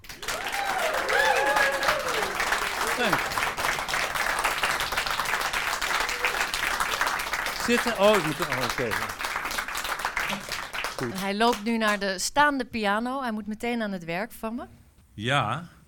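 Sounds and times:
loud steady audience applause: 0.0s - 11.6s
speech: 7.7s - 9.2s, 11.0s - 15.8s.

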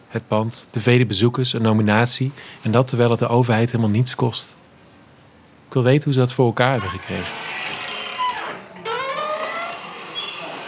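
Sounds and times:
speech: 0.1s - 4.6s, 5.7s - 7.6s
door opening with squeaky hinge creak: 6.7s - 10.6s.

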